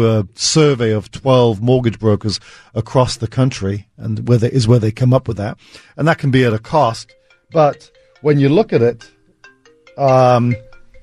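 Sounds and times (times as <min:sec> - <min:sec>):
speech: 0:00.0 - 0:09.2, 0:10.0 - 0:10.7
mobile phone ringtone: 0:07.0 - 0:11.0.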